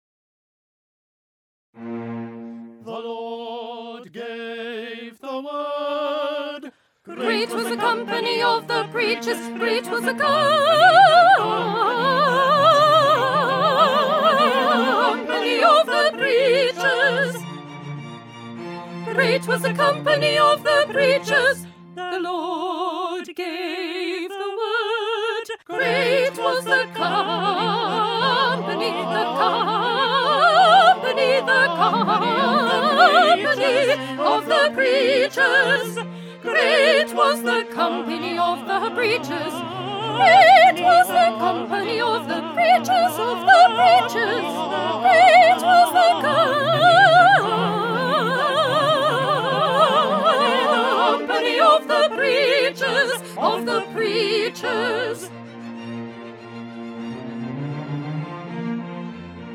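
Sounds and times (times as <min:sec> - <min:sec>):
soprano singing: 0:02.0 - 0:17.8, 0:18.6 - 0:55.4.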